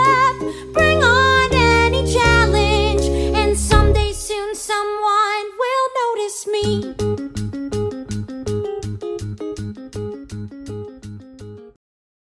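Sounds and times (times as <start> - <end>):
vocals: 0.0 - 7.1.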